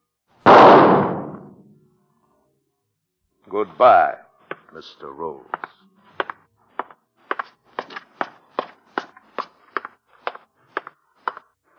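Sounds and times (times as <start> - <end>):
gunshot: 0.4 - 1.7
speech: 3.5 - 5.8.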